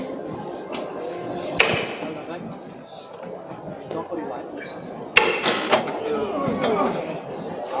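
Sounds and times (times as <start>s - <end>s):
crowd murmuring: 0.0s - 7.7s
sharp knock: 1.6s - 2.0s.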